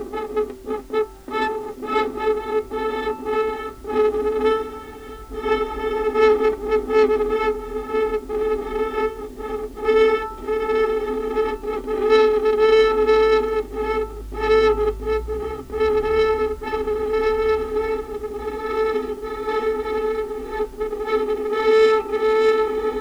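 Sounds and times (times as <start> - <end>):
violin extended technique: 0.2 - 22.9.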